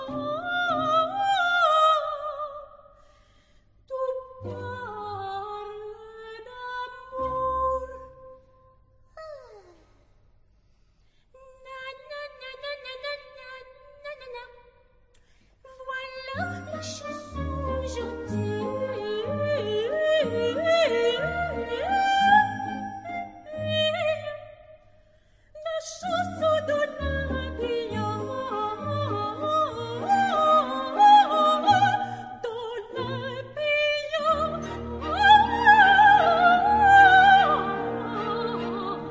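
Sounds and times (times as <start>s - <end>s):
soprano singing an aria: 0.0s - 2.8s, 3.9s - 8.5s, 15.7s - 24.7s, 25.6s - 39.0s.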